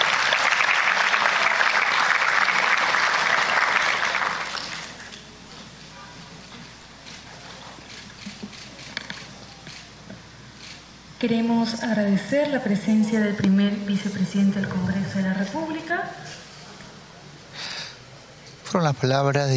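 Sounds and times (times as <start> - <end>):
audience applause: 0.0 - 5.1
speech: 11.2 - 16.4, 18.7 - 19.5.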